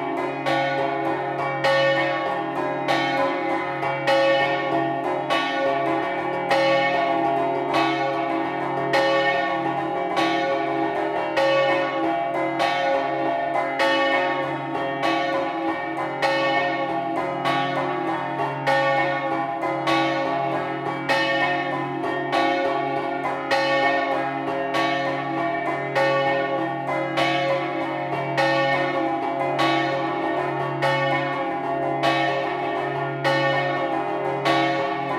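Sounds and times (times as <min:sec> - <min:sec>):
church bells ringing in scampanottata style: 0:00.0 - 0:35.1.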